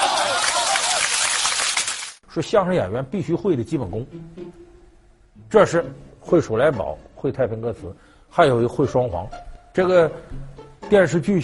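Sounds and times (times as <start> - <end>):
audience applause: 0.0 - 2.2
speech: 2.3 - 4.7, 5.4 - 11.4.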